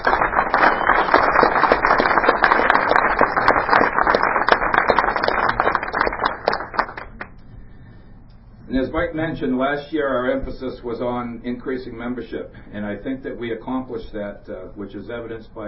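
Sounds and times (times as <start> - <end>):
audience applause: 0.0 - 7.2
speech: 9.0 - 15.6.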